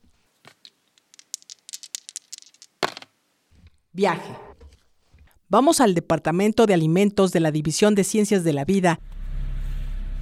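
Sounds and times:
dice rattling and clattering: 0.4 - 3.2
speech: 4.0 - 4.5, 5.5 - 9.2.

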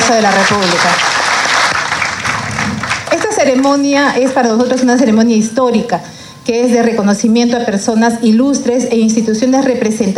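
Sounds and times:
large crowd applause: 0.0 - 3.7
speech: 0.1 - 1.1, 3.4 - 10.1.

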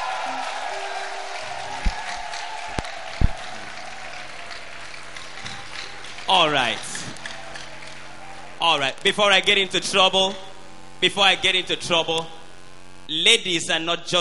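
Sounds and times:
vocal whoop: 0.0 - 4.8
audience applause: 0.0 - 9.2
speech: 6.3 - 6.9, 8.6 - 12.4, 13.1 - 14.1.

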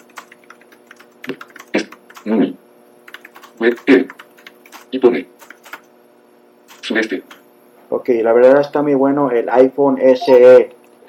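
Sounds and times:
typing on a computer keyboard into a Word document: 0.0 - 2.4, 3.0 - 5.9, 6.7 - 7.4
speech: 1.2 - 1.6, 3.6 - 4.2, 4.9 - 5.4, 6.9 - 11.0.

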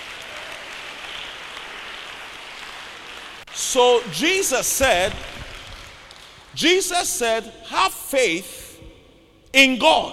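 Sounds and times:
audience clapping: 0.0 - 6.9
speech: 3.6 - 5.4, 6.6 - 8.6, 9.5 - 10.1.

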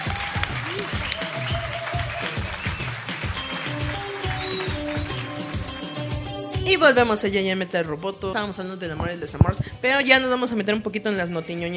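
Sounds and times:
whistles and cheers: 0.0 - 5.3
crowd applause: 0.0 - 6.2
pulsing beat: 0.0 - 6.6
speech: 6.7 - 11.7.

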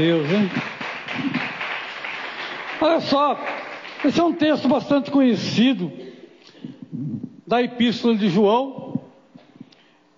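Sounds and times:
speech: 0.0 - 1.4, 2.8 - 6.0, 7.0 - 8.8
applause: 0.0 - 5.1.

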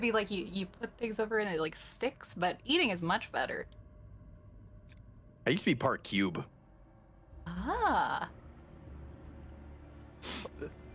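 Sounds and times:
speech: 0.0 - 3.8, 5.5 - 6.6, 7.4 - 8.4, 10.2 - 10.8
person sniffing: 10.2 - 10.6.

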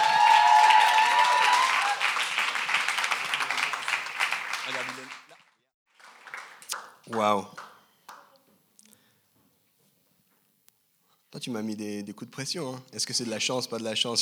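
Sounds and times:
audience applause: 0.0 - 8.2
speech: 7.1 - 7.6, 11.4 - 14.2.

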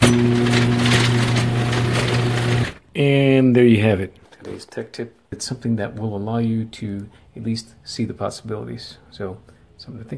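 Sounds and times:
garage door opener motor hum, opened via phone app: 0.0 - 2.8
speech: 3.0 - 10.1.

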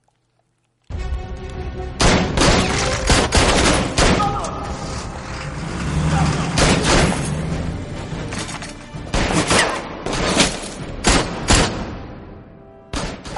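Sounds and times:
rumbling background: 0.0 - 13.3
gunfire in a spy action-comedy shootout: 2.0 - 4.6, 6.4 - 7.3, 9.0 - 12.2, 12.9 - 13.3.

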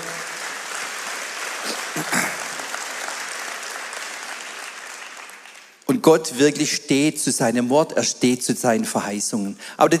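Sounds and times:
audience applause: 0.0 - 5.9
speech: 5.9 - 9.9.

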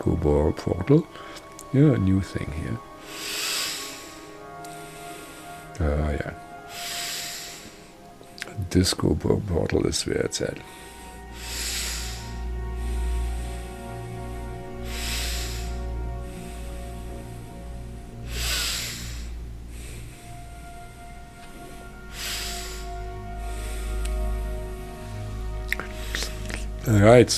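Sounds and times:
speech: 0.2 - 3.4, 5.8 - 6.5, 8.6 - 10.9, 26.9 - 27.3
deep breathing through the nostrils: 1.1 - 1.5, 2.8 - 5.8, 6.4 - 8.4, 10.6 - 26.8.

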